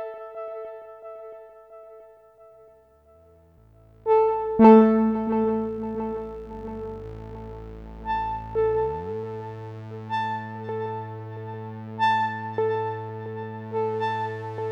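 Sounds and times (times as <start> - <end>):
sweet octave tones: 3.2 - 14.6.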